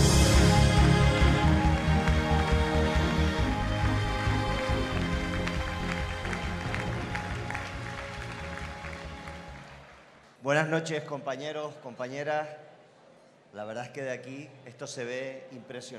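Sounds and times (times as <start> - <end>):
applause: 0.2 - 10.7
speech: 10.6 - 12.7, 13.5 - 15.9.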